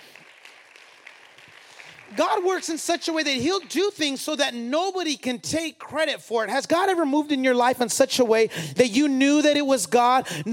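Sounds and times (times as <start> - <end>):
audience clapping: 0.0 - 4.3
speech: 2.1 - 10.5.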